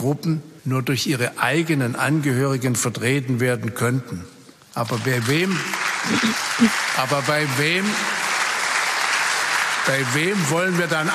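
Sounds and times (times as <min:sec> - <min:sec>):
speech: 0:00.0 - 0:08.2, 0:09.8 - 0:11.1
parliament applause: 0:04.8 - 0:11.1.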